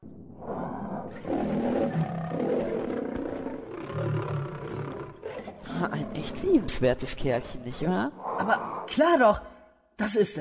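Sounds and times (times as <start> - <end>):
thylacine (Tasmanian tiger) roaring and growling call: 0.4 - 6.8, 8.2 - 9.0
speech: 5.8 - 10.4.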